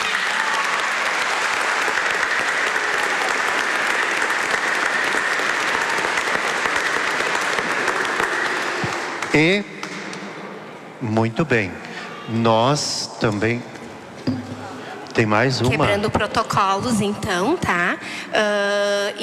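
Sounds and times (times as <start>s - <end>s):
audience applause: 0.0s - 9.6s
speech: 9.4s - 9.7s, 11.0s - 14.4s, 15.2s - 19.2s.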